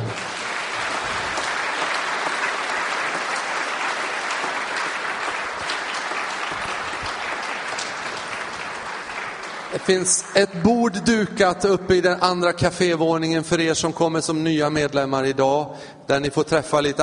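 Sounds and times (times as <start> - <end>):
audience applause: 0.0 - 10.7
speech: 9.8 - 17.0.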